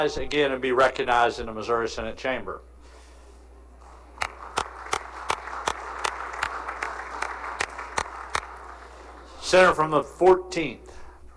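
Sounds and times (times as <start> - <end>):
speech: 0.0 - 2.7, 9.5 - 11.0
audience applause in senate chamber: 3.8 - 9.8.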